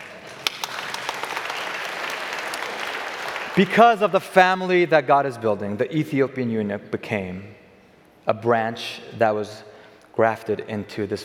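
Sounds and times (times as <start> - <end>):
crowd clapping: 0.0 - 4.2
speech: 3.6 - 7.6, 8.2 - 11.2.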